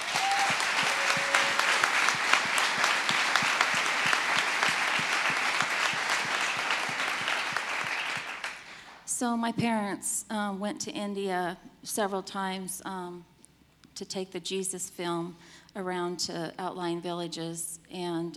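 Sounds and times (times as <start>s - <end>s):
audience round of applause: 0.0s - 8.8s
speech: 9.2s - 13.3s, 14.0s - 18.3s.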